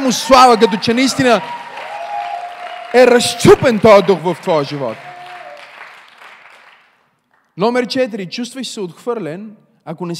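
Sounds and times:
speech: 0.0 - 1.6, 2.9 - 5.1, 7.6 - 10.1
audience applauding: 0.0 - 7.1.

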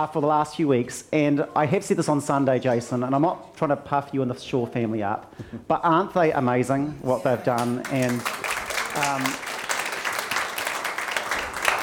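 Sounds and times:
speech: 0.0 - 8.4, 9.0 - 9.5
church congregation clapping: 7.5 - 11.8.

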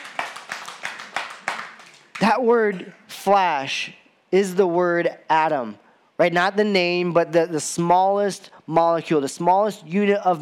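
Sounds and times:
audience applause: 0.0 - 2.3
steady rhythmic claps: 0.0 - 2.8
speech: 2.2 - 10.4.

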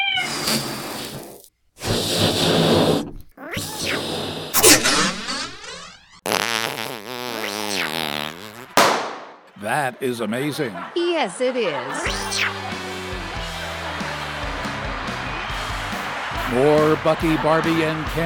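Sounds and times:
balloon being twisted into a balloon animal: 0.0 - 8.9
laughter: 8.3 - 18.2
speech: 10.0 - 12.8, 16.5 - 18.2.

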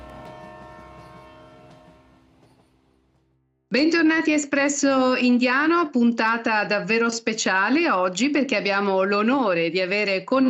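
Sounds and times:
horn-like tone in a train departure sound effect: 0.0 - 3.1
speech: 3.7 - 10.4.

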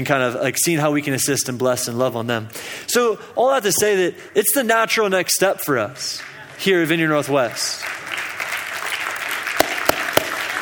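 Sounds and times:
speech: 0.0 - 8.2
audience clapping: 5.7 - 10.6
sharp loud claps: 7.8 - 10.6.

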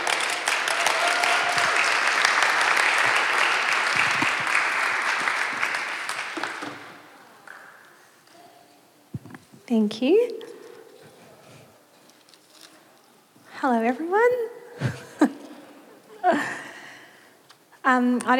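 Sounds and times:
audience applause: 0.0 - 8.0
speech: 9.7 - 10.4, 13.6 - 14.5, 17.9 - 18.3.

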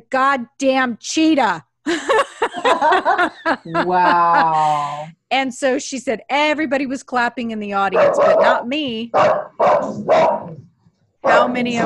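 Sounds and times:
speech: 0.0 - 2.0, 2.6 - 10.6, 11.2 - 11.8
laughter: 1.9 - 5.1
dog barking: 8.0 - 10.6, 11.2 - 11.8.

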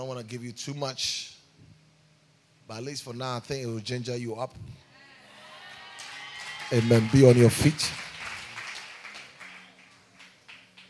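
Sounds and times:
speech: 0.1 - 1.4, 2.7 - 4.8, 6.7 - 8.1
crowd clapping: 5.6 - 10.8.

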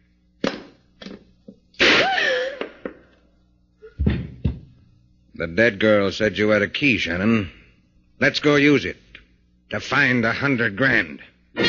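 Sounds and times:
gun thrown onto the floor as a radio drama sound effect: 4.0 - 4.7
speech: 5.4 - 7.6, 8.2 - 9.0, 9.7 - 11.3.

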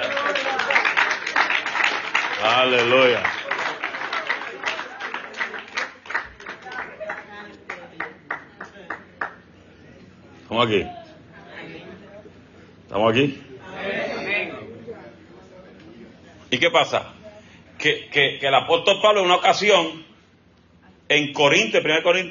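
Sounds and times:
audience applause: 0.0 - 9.4
speech: 2.5 - 3.4, 10.6 - 11.0, 13.0 - 13.4, 16.5 - 17.2, 17.8 - 20.1, 21.1 - 22.3.

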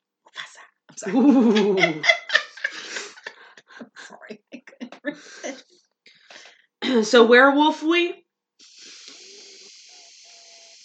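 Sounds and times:
speech: 1.0 - 2.2, 7.0 - 8.2
laughter: 1.0 - 5.7
whistling nose while breathing: 8.6 - 10.8.

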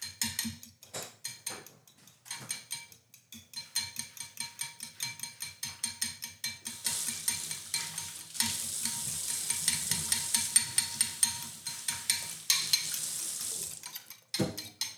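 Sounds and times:
eggs being lightly beaten in a bowl: 2.4 - 14.9
hissing wash: 6.7 - 13.9.

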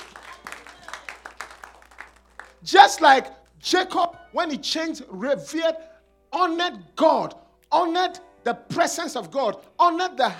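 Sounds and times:
audience clapping: 0.0 - 2.7
speech: 2.6 - 10.3.

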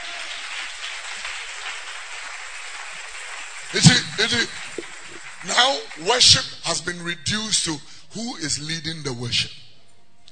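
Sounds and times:
audience clapping hands: 0.0 - 6.8
speech: 3.7 - 4.6, 5.4 - 9.6.

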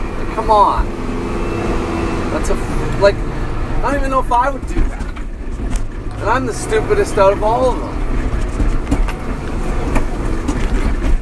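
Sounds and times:
car driving over a bumpy road: 0.0 - 11.1
speech: 0.4 - 1.0, 2.3 - 5.0, 6.2 - 8.0.

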